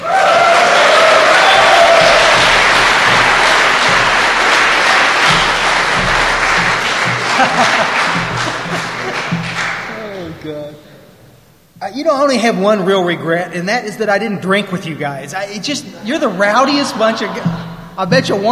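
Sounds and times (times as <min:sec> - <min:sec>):
rowdy crowd applause with whoops and cheers: 0:00.0 - 0:10.4
laughter: 0:01.0 - 0:10.5, 0:16.0 - 0:18.4
speech: 0:12.0 - 0:18.4.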